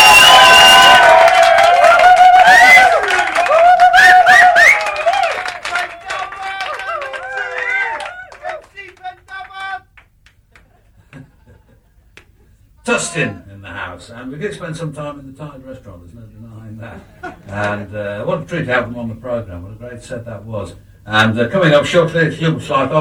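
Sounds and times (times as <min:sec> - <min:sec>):
studio audience cheering and clapping: 0:00.0 - 0:10.8
speech: 0:14.4 - 0:22.9.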